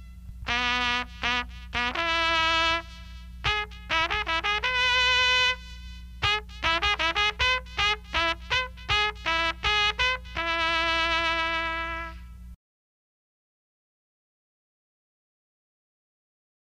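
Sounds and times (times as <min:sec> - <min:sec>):
cavalry trumpet calls for honours to the president of the republic: 0:00.0 - 0:12.3.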